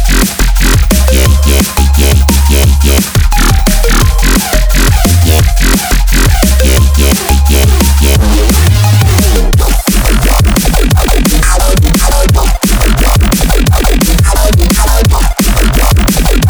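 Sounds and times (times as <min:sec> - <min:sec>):
synth presets: 0:00.0 - 0:16.4.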